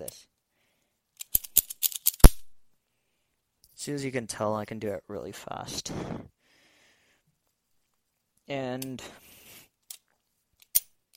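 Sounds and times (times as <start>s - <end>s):
combination padlock shackle clack as it is pulled up: 1.2s - 2.4s, 10.6s - 11.1s
speech: 3.9s - 6.4s, 8.5s - 9.2s.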